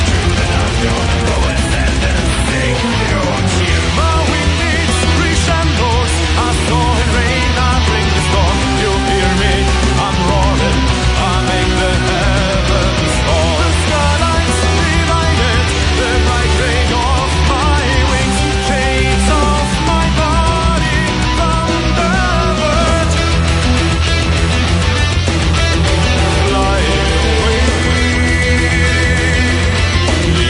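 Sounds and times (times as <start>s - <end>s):
symphonic metal music: 0.0s - 30.4s.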